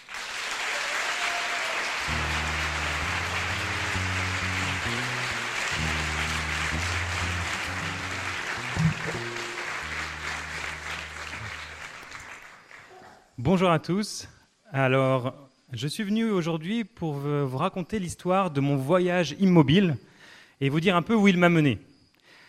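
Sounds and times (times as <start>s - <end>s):
audience applauding loudly: 0.0s - 12.9s
speech: 13.4s - 21.9s.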